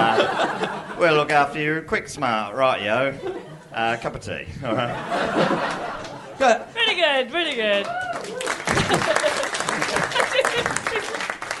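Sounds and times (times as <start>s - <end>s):
laughter: 0.0s - 1.5s, 3.0s - 4.0s, 4.6s - 6.7s, 8.3s - 11.4s
speech: 0.2s - 10.9s
audience clapping: 5.5s - 6.2s, 7.3s - 11.5s.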